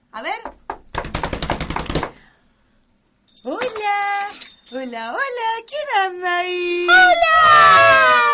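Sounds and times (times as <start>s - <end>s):
speech: 0.2s - 0.6s, 4.7s - 8.2s
knocking on a door: 0.3s - 2.2s.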